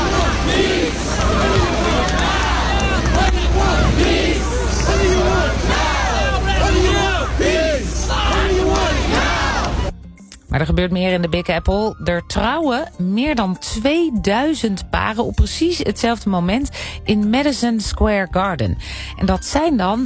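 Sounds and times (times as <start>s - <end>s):
dense babble of many voices of a peace march crowd: 0.0s - 9.9s
shouts and calls: 0.0s - 9.9s
speech: 10.7s - 20.0s.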